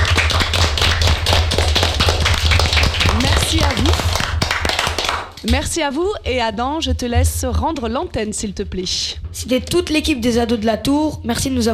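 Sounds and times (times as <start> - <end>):
group applauding themselves: 0.0 - 5.7
speech: 5.5 - 11.7.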